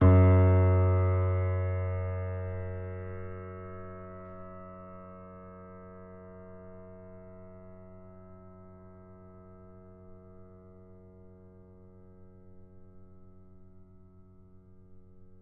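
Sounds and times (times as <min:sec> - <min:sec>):
F sharp 5 piano note: 0:00.0 - 0:07.5.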